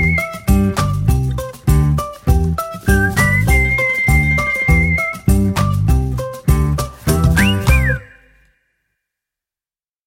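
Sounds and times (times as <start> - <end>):
whistled melody: 0.0 - 1.5, 2.6 - 8.8.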